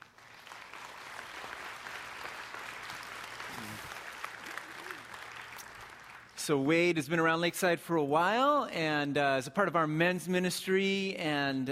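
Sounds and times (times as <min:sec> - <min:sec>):
audience at a church gathering applauding to welcome a speaker: 0:00.0 - 0:06.4
speech: 0:06.4 - 0:11.7.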